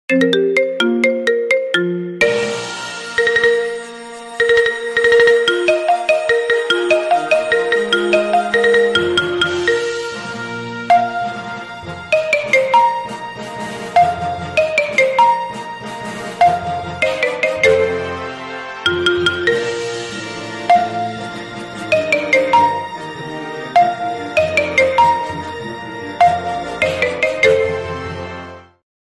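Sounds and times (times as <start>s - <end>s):
marimba ringtone remix: 0.1s - 10.2s, 10.9s - 11.5s, 12.1s - 13.2s, 14.0s - 15.7s, 16.4s - 18.3s, 18.9s - 20.1s, 20.7s - 21.3s, 21.9s - 23.1s, 23.8s - 25.6s, 26.2s - 28.0s.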